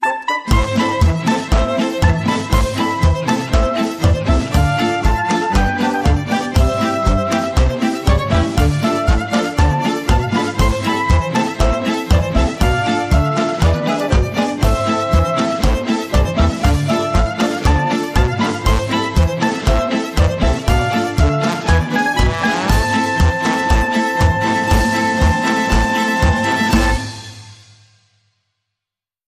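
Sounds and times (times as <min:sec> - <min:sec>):
jingle: 0:00.0 - 0:27.6.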